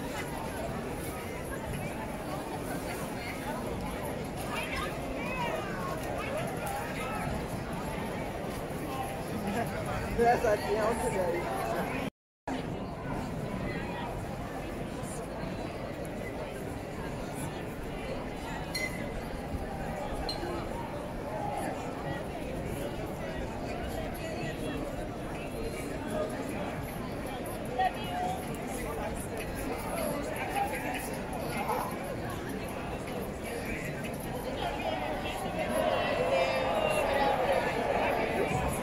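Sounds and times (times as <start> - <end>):
crowded street ambience: 0.0 - 38.8.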